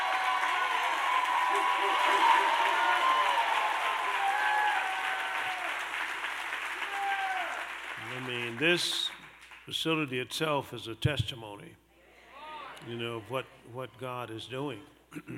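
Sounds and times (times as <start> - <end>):
standing ovation applause: 0.0 - 9.7
speech: 1.5 - 2.9, 8.6 - 11.8, 12.8 - 15.3.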